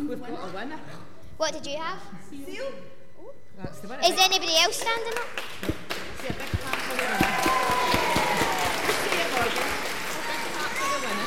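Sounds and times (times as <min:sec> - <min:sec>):
speech: 0:00.0 - 0:08.2
audience clapping for a winner: 0:04.6 - 0:11.2.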